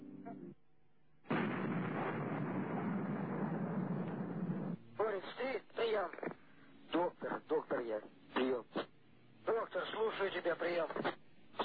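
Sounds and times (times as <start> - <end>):
gunfire in a combat setting: 1.3 - 4.8
man speaking in a thin band-limited voice: 5.0 - 8.9, 9.4 - 11.6.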